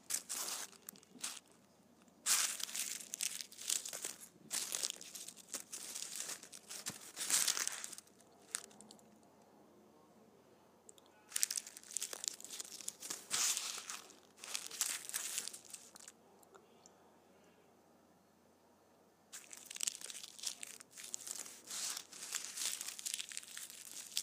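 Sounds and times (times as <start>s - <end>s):
candy wrappers crinkling: 0.0s - 9.1s, 11.3s - 16.2s, 19.3s - 24.2s.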